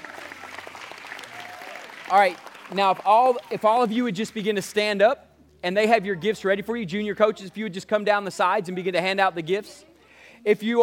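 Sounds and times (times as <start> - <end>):
audience hand clapping: 0.0 - 4.8
speech: 2.1 - 10.8.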